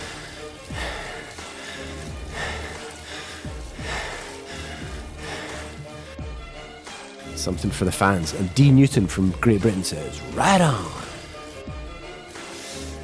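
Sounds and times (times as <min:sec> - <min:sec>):
cyclist's heavy rhythmic breathing: 0:00.0 - 0:06.2, 0:12.3 - 0:13.0
speech: 0:07.4 - 0:11.0.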